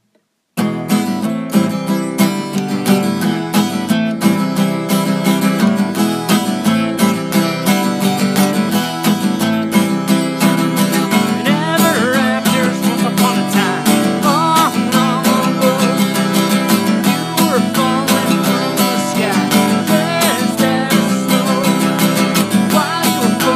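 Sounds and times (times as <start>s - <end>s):
acoustic music: 0.6s - 23.5s.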